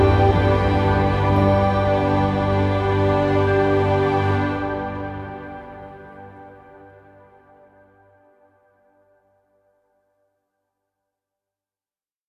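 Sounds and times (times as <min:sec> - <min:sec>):
holy ambient music: 0:00.0 - 0:08.6.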